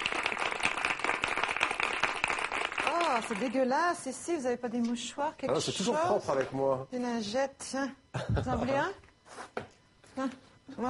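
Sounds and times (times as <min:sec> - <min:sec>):
faint clapping from students and audience at a Francophonie event: 0:00.0 - 0:03.6
speech: 0:03.3 - 0:09.0, 0:10.2 - 0:10.8.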